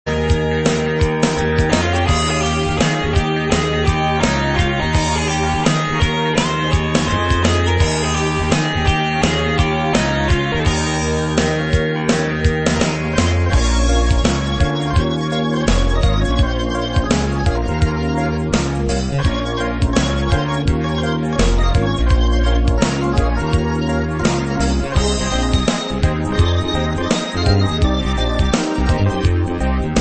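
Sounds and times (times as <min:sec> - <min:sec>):
emulated guitar mix: 0:00.1 - 0:29.9.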